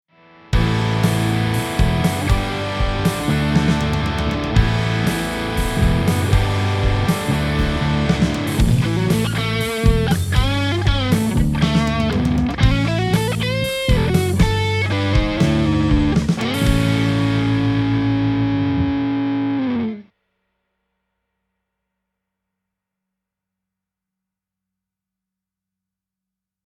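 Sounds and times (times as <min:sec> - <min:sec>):
rock music: 0:00.4 - 0:20.0.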